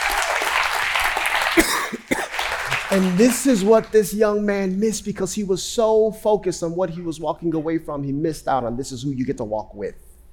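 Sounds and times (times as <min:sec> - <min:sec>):
audience clapping: 0:00.0 - 0:04.3
speech: 0:02.9 - 0:10.0.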